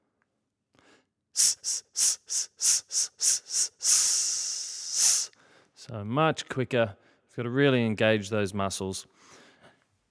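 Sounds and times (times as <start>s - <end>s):
sharp exhaled breath bursts during a breathing exercise: 0.8s - 5.8s
speech: 1.4s - 1.8s, 6.0s - 9.2s
longer sustained hissing exhale: 1.4s - 5.5s.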